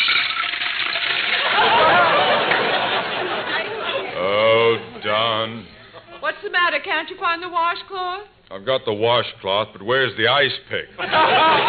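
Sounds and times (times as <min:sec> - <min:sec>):
water poured from pitcher into bowl: 0:00.0 - 0:01.4
laughter: 0:01.3 - 0:05.2, 0:11.0 - 0:11.6
speech: 0:06.4 - 0:11.6.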